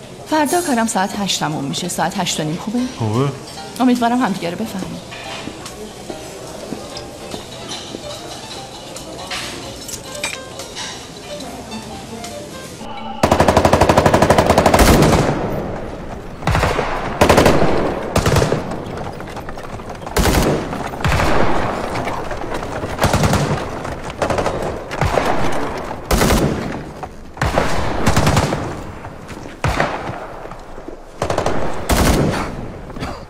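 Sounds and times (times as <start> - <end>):
speech: 0.3 - 5.1
machine gun fire: 13.2 - 19.2, 20.1 - 29.0, 31.2 - 32.6.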